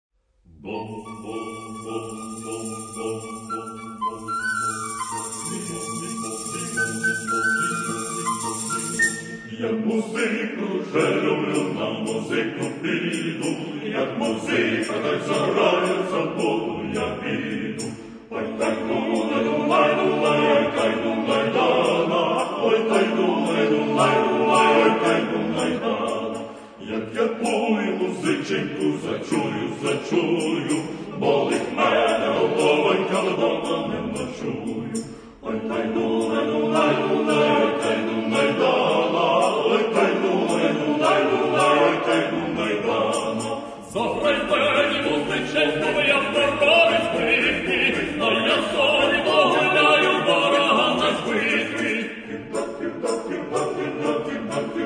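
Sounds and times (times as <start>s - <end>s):
Ukrainian folk melodies: 0.6s - 54.8s.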